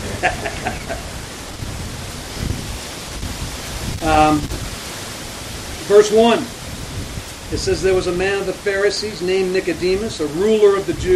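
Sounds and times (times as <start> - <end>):
laughter: 0.0 - 1.2
strong wind blowing outdoors: 0.0 - 11.1
speech: 4.1 - 4.6, 5.9 - 6.6, 7.5 - 11.1.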